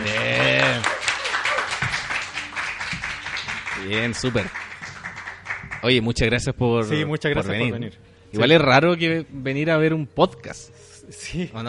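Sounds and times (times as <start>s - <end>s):
audience applause: 0.0s - 5.9s
speech: 3.8s - 4.6s, 5.8s - 11.6s.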